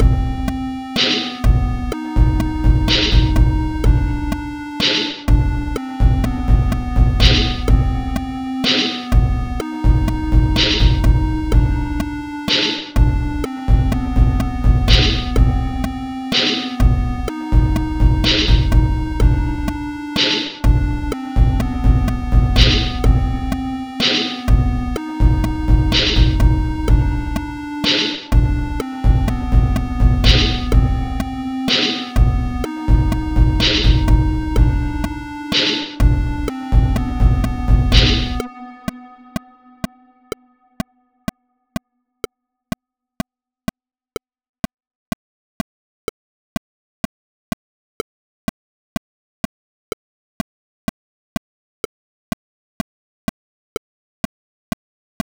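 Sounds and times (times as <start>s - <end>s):
sine wave tone: 0.0s - 41.0s.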